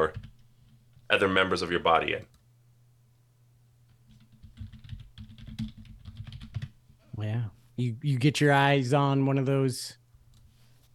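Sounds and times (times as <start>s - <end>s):
typing on a computer keyboard: 0.1s - 0.4s, 4.1s - 6.8s
speech: 1.1s - 2.4s, 7.2s - 10.0s.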